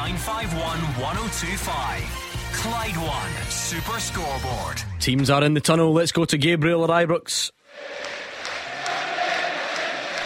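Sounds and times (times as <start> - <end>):
speech: 0.0 - 8.1
noisy stadium crowd at Ibrox: 7.7 - 10.2.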